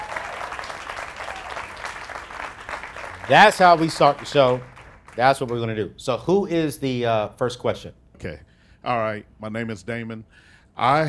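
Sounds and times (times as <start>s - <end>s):
crowd applauding: 0.0s - 5.7s
speech: 3.3s - 11.0s.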